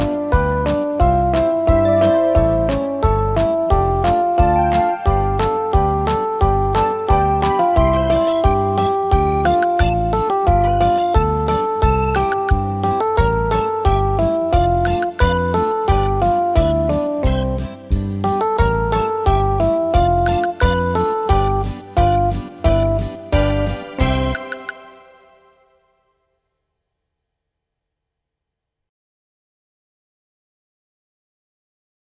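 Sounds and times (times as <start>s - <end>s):
instrumental backing track for a children's dance with balls of yarn: 0.0s - 25.3s.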